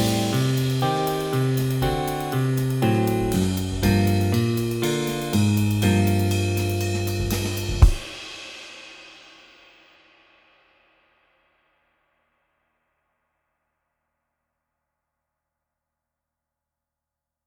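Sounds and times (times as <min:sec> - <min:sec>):
walking bass line: 0:00.0 - 0:08.0.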